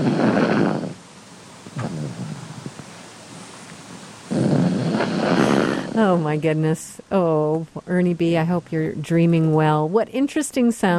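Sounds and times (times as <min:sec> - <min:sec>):
pug grumbling and snoring: 0:00.0 - 0:01.0, 0:01.7 - 0:02.9, 0:04.3 - 0:06.2
speech: 0:06.0 - 0:10.9.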